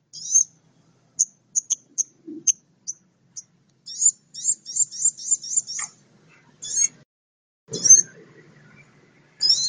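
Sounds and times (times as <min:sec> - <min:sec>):
Oriental magpie-robin singing trills, repeated notes, whistles and chips: 0:00.0 - 0:00.6, 0:01.2 - 0:07.0, 0:07.7 - 0:09.6.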